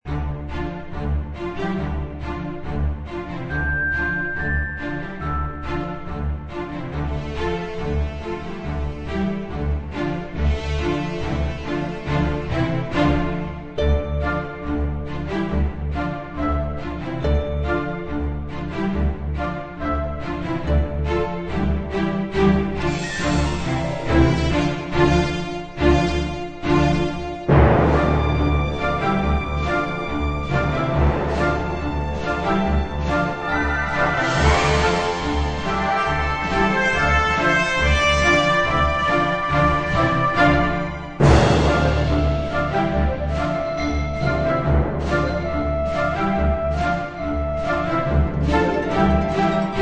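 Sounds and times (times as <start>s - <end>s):
serious sidequest game overworld music: 0.0s - 49.8s.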